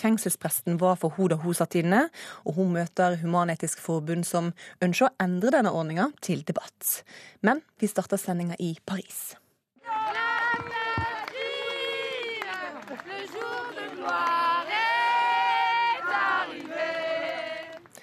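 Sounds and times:
speech: 0.0 - 10.6
large crowd singing a national anthem in Paris: 9.8 - 17.9.

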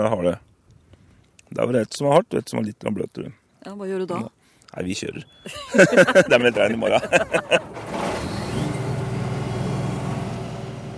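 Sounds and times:
speech: 0.0 - 0.5, 1.5 - 8.3
laughter: 5.5 - 7.7
large green combine harvester engine starting: 6.0 - 10.9.

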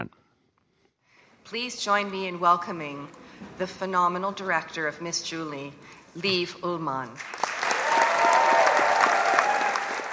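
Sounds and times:
speech: 1.5 - 7.5
standing ovation applause in theatre: 7.2 - 10.1.

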